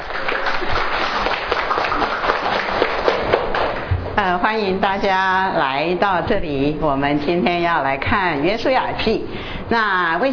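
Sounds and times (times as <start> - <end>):
audience applause: 0.0 - 3.9
speech: 4.2 - 10.3.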